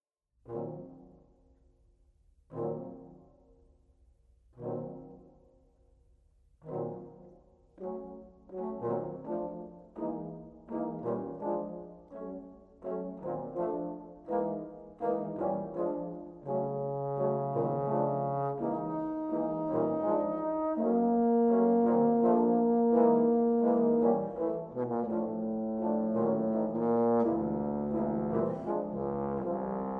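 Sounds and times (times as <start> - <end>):
bass trombone: 6.6 - 29.9.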